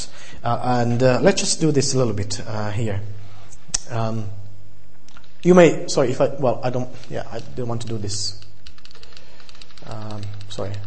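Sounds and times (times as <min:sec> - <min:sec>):
speech: 0:00.4 - 0:03.2, 0:03.9 - 0:04.4, 0:05.4 - 0:08.4, 0:09.9 - 0:10.8
computer clicks: 0:06.9 - 0:10.8.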